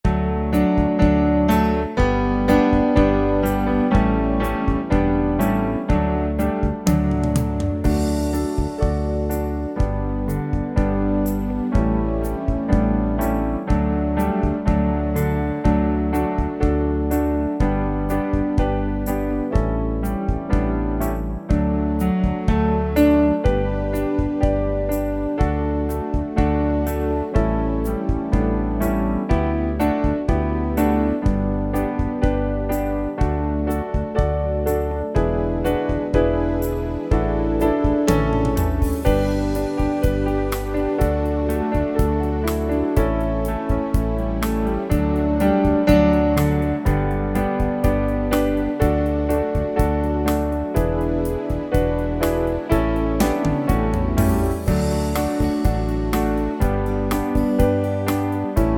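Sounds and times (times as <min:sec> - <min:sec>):
song accompaniment only: 0:00.0 - 0:58.7.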